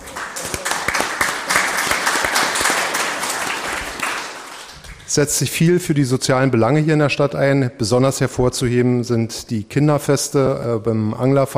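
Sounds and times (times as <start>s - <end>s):
audience applause: 0.0s - 5.2s
speech: 5.2s - 11.5s.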